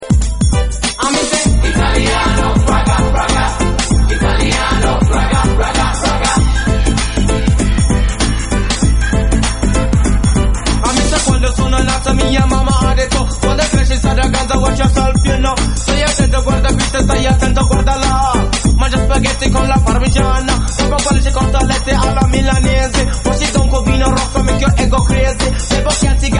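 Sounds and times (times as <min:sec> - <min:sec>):
ragga music: 0:00.0 - 0:26.3.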